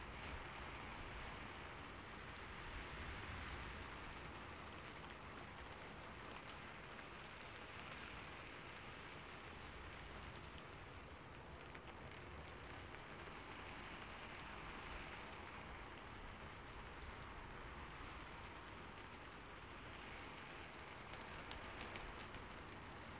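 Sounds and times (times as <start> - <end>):
rain on a rooftop: 0.0 - 23.1.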